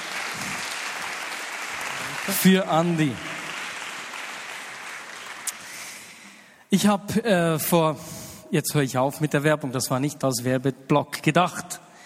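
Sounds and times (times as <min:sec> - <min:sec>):
audience applause: 0:00.0 - 0:06.2
speech: 0:02.3 - 0:03.3, 0:06.7 - 0:11.8.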